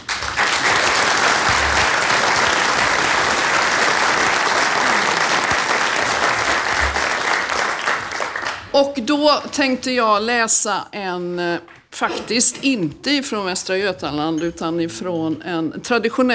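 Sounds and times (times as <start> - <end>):
large audience applause: 0.0 - 8.7
speech: 8.8 - 16.3.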